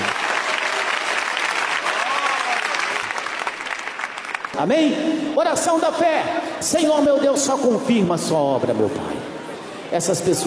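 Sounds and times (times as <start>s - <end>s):
congregation clapping hands at a church service: 0.0s - 4.8s
speech: 4.6s - 9.2s, 9.9s - 10.4s.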